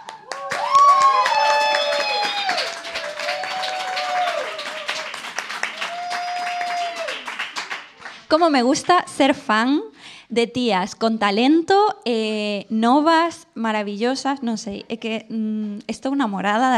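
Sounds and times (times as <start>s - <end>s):
audience applause: 0.0s - 8.3s
speech: 8.3s - 16.7s.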